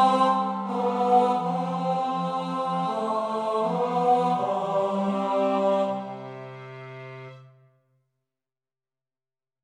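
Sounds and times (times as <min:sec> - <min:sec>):
tenor singing: 0:00.0 - 0:07.3.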